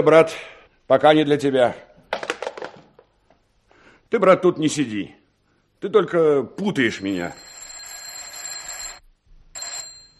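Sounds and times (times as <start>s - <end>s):
speech: 0.0s - 1.9s, 4.1s - 5.2s, 5.8s - 7.5s
telephone ringing in a criminal investigation office: 6.8s - 9.0s, 9.6s - 10.1s.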